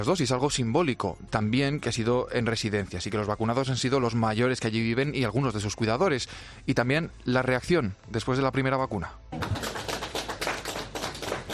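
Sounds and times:
speech: 0:00.0 - 0:09.6
group clapping for first vaccine recipient at an Extremadura care home: 0:09.3 - 0:11.5.

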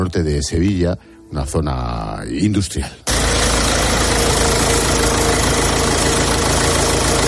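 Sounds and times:
speech: 0:00.1 - 0:03.3
car engine idling in a repair workshop: 0:03.1 - 0:07.2.

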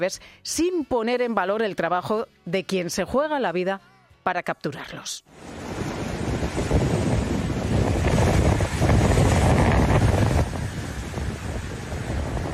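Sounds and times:
speech: 0:00.0 - 0:05.6
waves breaking against rocks: 0:05.5 - 0:12.5.

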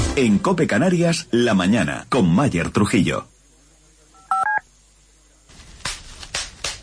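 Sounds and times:
speech: 0:00.2 - 0:03.3
bubble wrap popping: 0:05.5 - 0:06.8.

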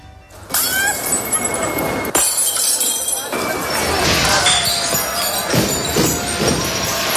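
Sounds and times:
faint bell tone: 0:00.0 - 0:04.0
crowd voices: 0:00.0 - 0:07.1
ceramic plates and cups shattering on pavement: 0:00.5 - 0:07.1.

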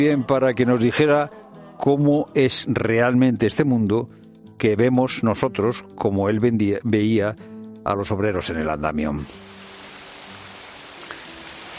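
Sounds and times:
speech: 0:00.0 - 0:09.5
steady rain falling: 0:09.3 - 0:11.7.

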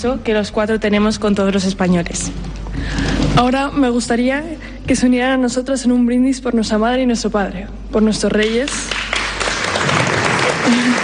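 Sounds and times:
speech: 0:00.0 - 0:09.0
crowd applause interrupting a speech at a formal toast: 0:08.9 - 0:11.0.

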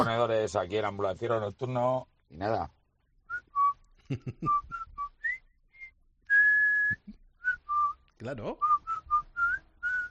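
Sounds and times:
speech: 0:00.0 - 0:02.8, 0:04.1 - 0:04.8, 0:08.2 - 0:08.7
whistling: 0:03.3 - 0:10.0.

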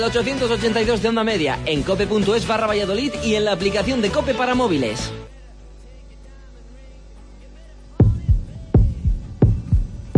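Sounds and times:
speech: 0:00.0 - 0:05.3
heartbeat sound effect: 0:08.0 - 0:10.1.

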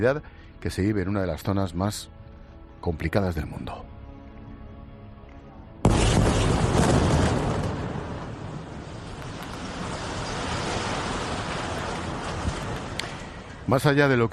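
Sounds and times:
speech: 0:00.0 - 0:02.2, 0:02.8 - 0:03.9, 0:13.7 - 0:14.3
explosion destroying the Gafri Tower in Gaza City's port area: 0:05.8 - 0:13.7.

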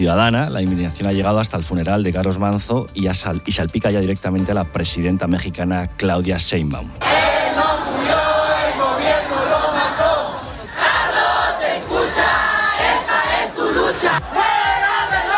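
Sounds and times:
speech: 0:00.0 - 0:07.2
protesters chanting: 0:07.0 - 0:15.3.

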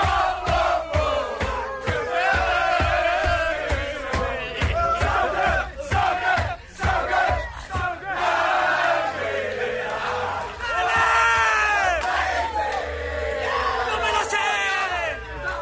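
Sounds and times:
rhythmic percussive beats: 0:00.0 - 0:08.1
football players shouting and chanting in their dressing room: 0:00.0 - 0:15.6.

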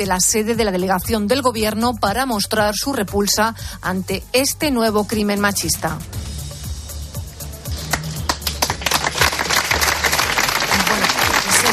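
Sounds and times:
speech: 0:00.0 - 0:06.3
crowd applause ending a minute's silence: 0:07.9 - 0:11.7.

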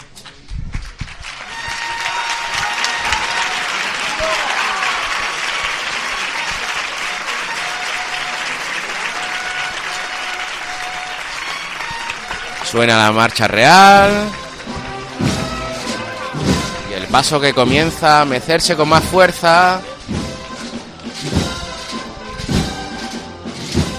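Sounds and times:
neighbourhood crowd in Triana applauding Holy Week procession float: 0:00.0 - 0:23.2
speech: 0:12.7 - 0:14.4, 0:17.1 - 0:19.9
sharp knocks: 0:14.7 - 0:16.9.

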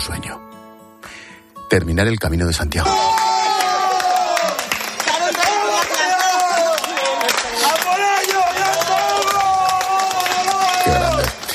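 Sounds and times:
speech: 0:01.7 - 0:03.2
children and adults shouting with excitement: 0:02.8 - 0:11.5
scattered clapping: 0:02.9 - 0:11.5.

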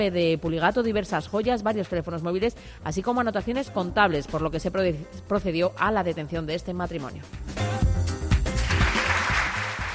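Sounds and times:
speech: 0:00.0 - 0:07.7
crowd applauding: 0:08.4 - 0:09.9.

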